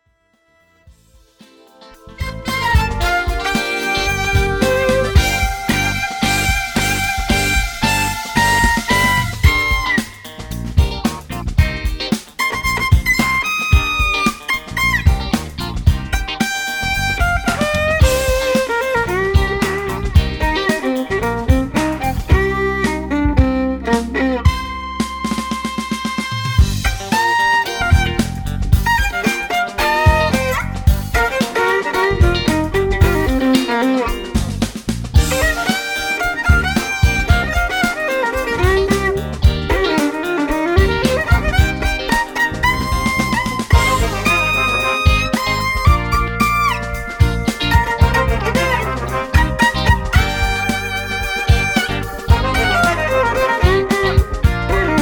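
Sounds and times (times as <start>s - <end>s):
funk music: 0.0s - 54.9s.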